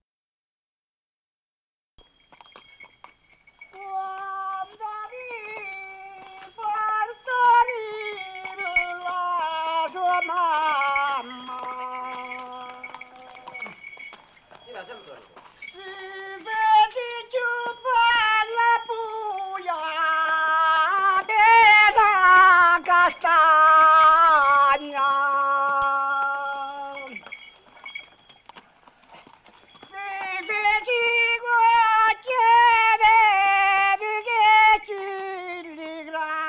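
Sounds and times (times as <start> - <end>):
mule driver's song: 3.7 - 13.8, 15.8 - 27.2, 29.9 - 36.4.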